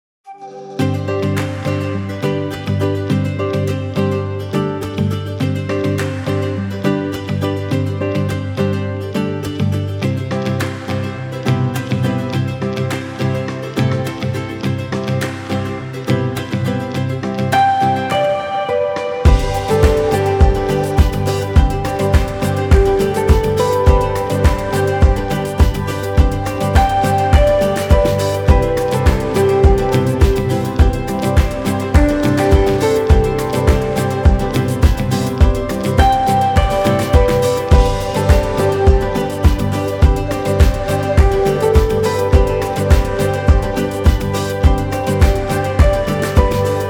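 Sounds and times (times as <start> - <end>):
happy summer music: 0.3 - 46.8.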